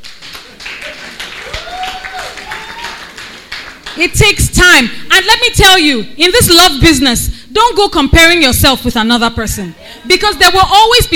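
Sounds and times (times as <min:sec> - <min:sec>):
audience clapping: 0:00.0 - 0:04.0
speech: 0:04.0 - 0:11.1.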